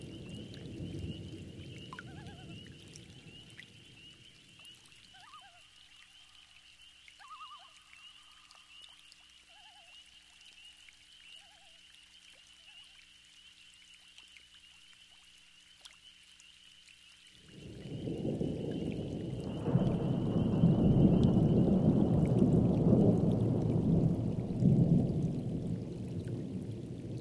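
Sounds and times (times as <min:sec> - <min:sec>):
thunderstorm: 0:00.0 - 0:04.1, 0:17.4 - 0:27.1.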